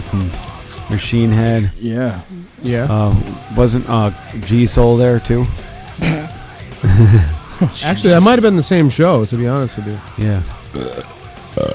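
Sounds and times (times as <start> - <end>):
speech: 0.1 - 11.7
laughter: 5.8 - 8.4
croaky low burps: 6.0 - 7.5, 10.7 - 11.7.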